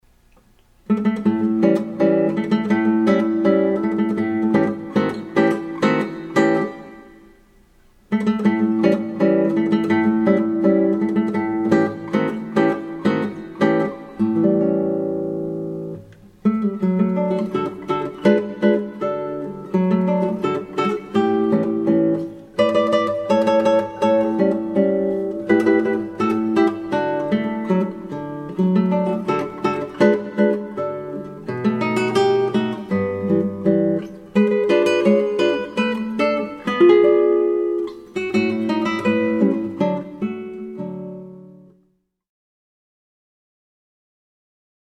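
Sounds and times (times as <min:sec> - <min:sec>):
guitar playing a polka: 0:00.9 - 0:07.4, 0:08.1 - 0:41.8.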